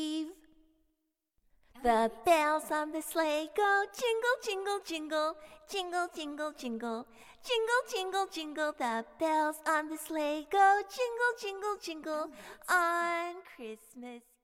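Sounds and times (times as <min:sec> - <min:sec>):
woman singing an English nursery rhyme: 0:01.8 - 0:14.4.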